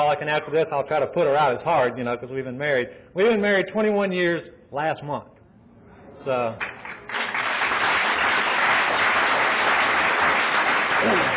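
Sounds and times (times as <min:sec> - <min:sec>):
speech: 0:00.0 - 0:05.4, 0:06.2 - 0:07.2, 0:11.0 - 0:11.3
audience applause: 0:06.6 - 0:11.3.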